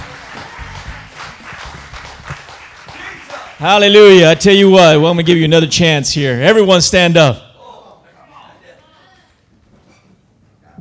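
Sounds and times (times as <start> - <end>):
audience hand clapping: 0.0 - 4.0
speech: 3.6 - 7.4.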